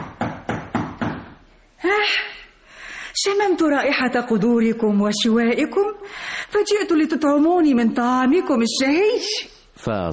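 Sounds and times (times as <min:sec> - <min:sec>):
neighbor woman knocking on a door: 0:00.0 - 0:01.4
speech: 0:03.2 - 0:10.1.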